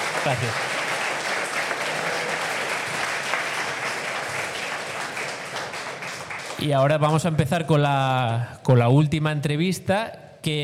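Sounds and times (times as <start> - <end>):
audience applause: 0.0 - 6.7
speech: 0.2 - 0.7, 6.6 - 10.6.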